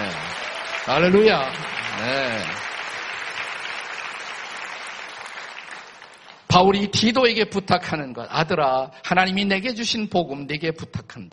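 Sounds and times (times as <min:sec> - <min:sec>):
audience applauding: 0:00.0 - 0:06.5
speech: 0:00.8 - 0:02.7, 0:06.6 - 0:11.3.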